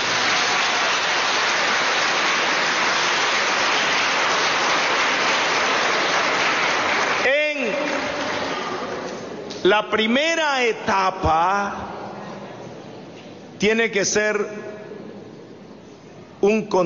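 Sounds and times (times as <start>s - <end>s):
applause: 0.0s - 9.6s
speech: 9.6s - 11.9s, 13.6s - 14.8s, 16.4s - 16.8s.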